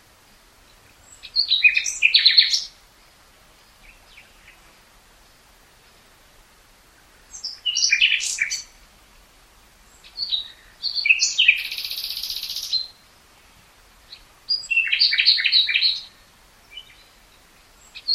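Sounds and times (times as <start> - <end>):
common nightingale singing: 0.3 - 4.7, 7.2 - 8.8, 9.9 - 13.2, 14.0 - 18.1.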